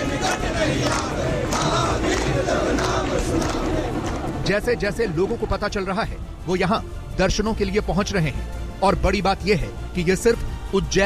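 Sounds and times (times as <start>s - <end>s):
large crowd singing devotional hymns: 0.0s - 4.7s
speech: 4.5s - 11.0s.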